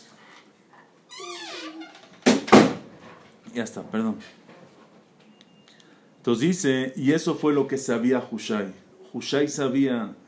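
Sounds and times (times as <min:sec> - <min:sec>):
door closing with heavy thuds: 0:01.2 - 0:02.9
speech: 0:03.6 - 0:04.4, 0:06.3 - 0:10.2.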